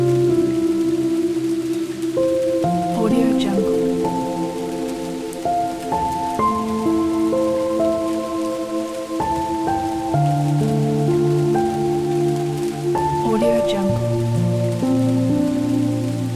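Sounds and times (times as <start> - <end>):
rain: 0.0 - 16.3
soft relaxing piano: 0.0 - 16.3.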